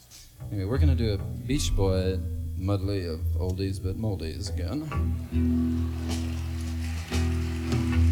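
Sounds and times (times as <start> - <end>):
speech: 0.5 - 5.6
audience applause: 5.1 - 8.0.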